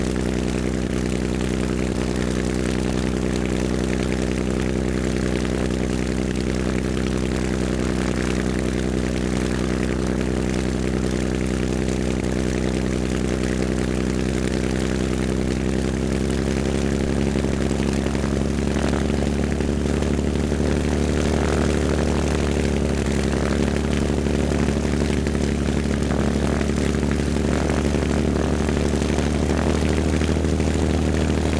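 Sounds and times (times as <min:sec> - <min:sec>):
stationary World War II fighter aircraft engine starting, idling and shutting down: 0:00.0 - 0:31.5.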